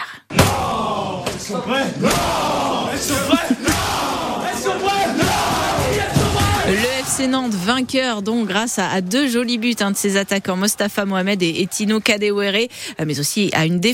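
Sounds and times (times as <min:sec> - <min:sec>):
players cheering and shouting in locker room: 0:00.3 - 0:12.5
laughter: 0:02.9 - 0:05.2
thuds and bangs: 0:05.1 - 0:06.9
speech: 0:07.2 - 0:13.9.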